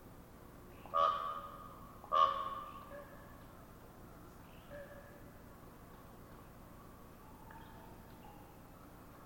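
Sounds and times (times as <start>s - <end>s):
common raven calls: 0.8s - 3.3s.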